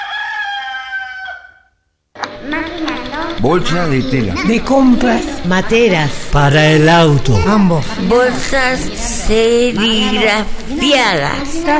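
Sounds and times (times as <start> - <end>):
fighting rooster crowing: 0.0 - 1.9
speech: 2.4 - 11.7.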